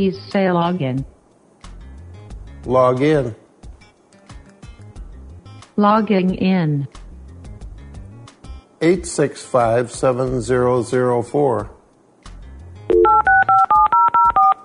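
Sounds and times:
speech: 0.0 - 1.2, 2.6 - 3.4, 5.8 - 7.0, 8.8 - 11.8
voice-controlled computer phone touch-tone keypad beeps: 12.9 - 14.6.

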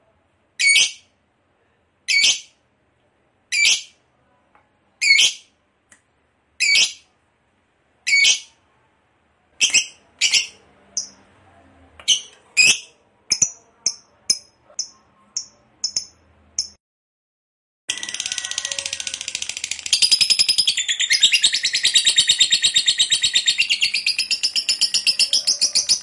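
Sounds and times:
lovebird chirps and long harsh chatter: 3.5 - 4.0, 5.0 - 5.5, 6.6 - 7.1, 8.1 - 8.5, 9.6 - 11.2, 12.0 - 16.7, 17.9 - 26.0.

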